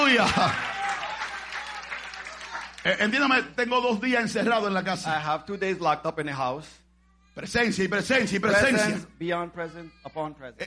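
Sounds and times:
audience applauding loudly: 0.0 - 3.4
speech: 0.1 - 0.7, 2.8 - 6.8, 7.4 - 10.6.

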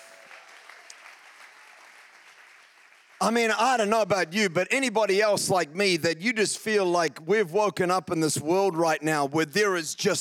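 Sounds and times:
audience clapping: 0.0 - 4.4
speech: 3.2 - 10.1.

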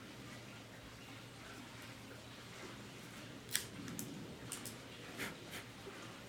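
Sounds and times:
low steady hiss: 0.0 - 6.2
Macanudo Inspirado Orange Label cigar V-cut with Cassetti multi-cutter: 3.5 - 3.7.

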